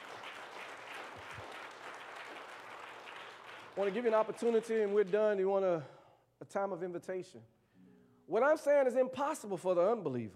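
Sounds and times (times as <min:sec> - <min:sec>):
audience hand clapping: 0:00.0 - 0:05.5
speech: 0:03.8 - 0:07.6, 0:08.3 - 0:10.3.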